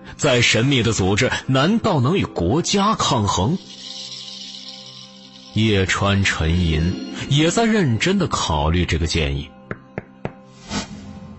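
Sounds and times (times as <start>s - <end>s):
speech: 0.2s - 3.8s, 5.6s - 9.6s
knocking on a door: 9.7s - 10.4s.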